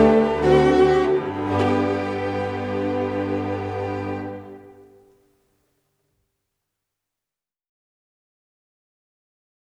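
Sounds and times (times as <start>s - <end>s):
cello and string ensemble: 0.0s - 5.0s.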